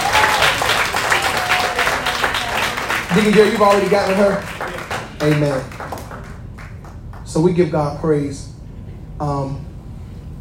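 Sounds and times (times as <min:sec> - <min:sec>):
church congregation clapping in praise: 0:00.0 - 0:07.5
speech: 0:03.1 - 0:04.5, 0:05.2 - 0:05.8, 0:07.3 - 0:08.5, 0:09.2 - 0:09.7.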